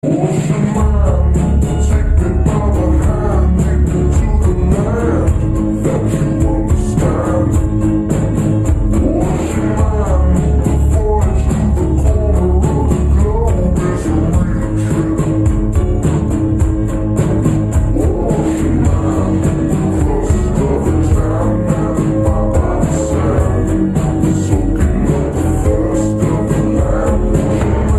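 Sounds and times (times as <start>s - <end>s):
vaporwave music: 0.0s - 27.9s.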